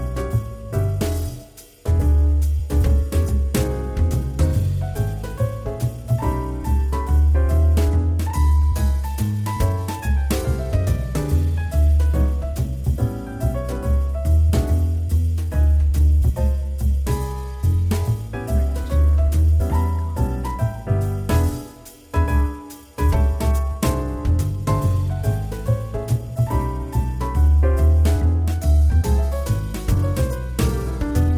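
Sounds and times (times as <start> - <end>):
swing trio playing in a bar: 0.0 - 31.3.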